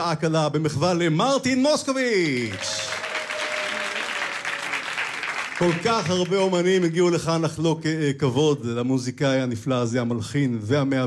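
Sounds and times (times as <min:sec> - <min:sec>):
speech: 0:00.0 - 0:02.9, 0:05.6 - 0:11.0
audience applause: 0:02.4 - 0:07.0.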